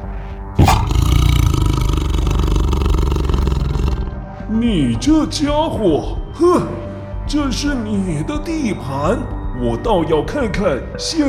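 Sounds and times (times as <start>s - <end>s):
angry tiger roaring: 0.6s - 4.2s
speech: 4.6s - 11.2s.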